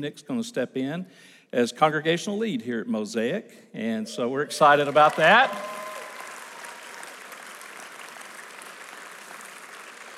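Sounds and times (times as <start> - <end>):
speech: 0.0 - 5.8
audience applause: 4.5 - 10.1.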